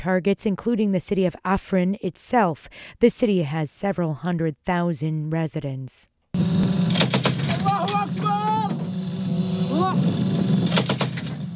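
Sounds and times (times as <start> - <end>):
speech: 0.0 - 6.1
gunfire from pro-Ankara Syrian rebel fighters in the Tal Malid area north of Aleppo: 6.4 - 8.8, 10.0 - 11.5.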